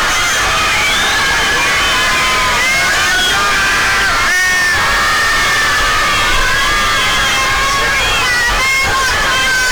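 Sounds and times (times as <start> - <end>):
large crowd of fans cheering and screaming outside hotel: 0.0 - 9.6.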